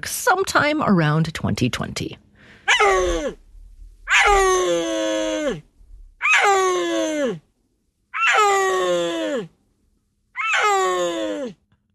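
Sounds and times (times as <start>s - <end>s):
speech: 0.0s - 3.4s, 4.1s - 5.7s, 6.4s - 7.4s
wild cat call from Central Asian mountains: 2.7s - 3.4s, 4.1s - 5.6s, 6.2s - 7.4s, 8.1s - 9.5s, 10.4s - 11.6s.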